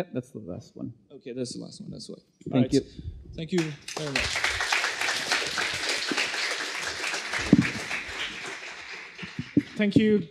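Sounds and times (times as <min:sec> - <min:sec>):
speech: 0:00.0 - 0:04.6, 0:09.8 - 0:10.2
audience applause: 0:03.6 - 0:10.2.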